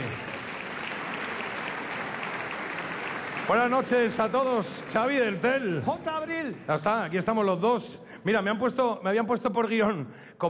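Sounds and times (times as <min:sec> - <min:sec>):
audience applause: 0:00.0 - 0:06.5
speech: 0:03.5 - 0:10.4.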